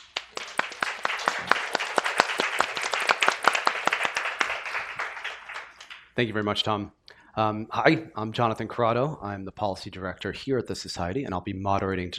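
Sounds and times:
audience round of applause: 0:00.0 - 0:06.2
speech: 0:06.2 - 0:12.1.

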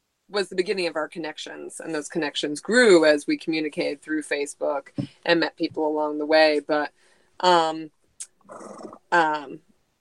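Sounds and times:
speech: 0:00.3 - 0:09.7
household's pet horse calling: 0:08.5 - 0:09.1.

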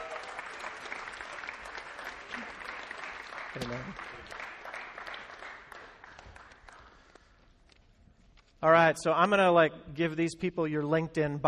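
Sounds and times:
audience applause welcoming a guest to the stage: 0:00.0 - 0:07.2
speech: 0:03.6 - 0:04.2, 0:08.6 - 0:11.4.

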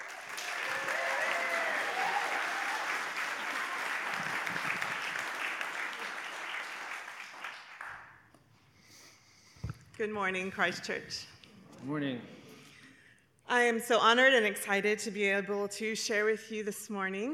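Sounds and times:
audience applause welcoming a speaker at a church gathering: 0:00.0 - 0:08.4
speech: 0:10.0 - 0:12.4, 0:13.5 - 0:17.3.

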